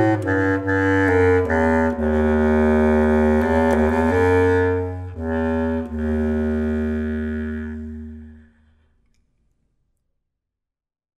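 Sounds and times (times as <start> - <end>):
bass clarinet solo: 0.0 - 8.6.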